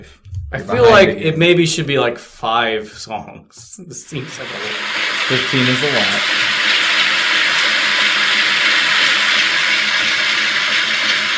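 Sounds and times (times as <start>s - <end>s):
speech: 0.0s - 6.6s
washing machine running: 4.2s - 11.3s.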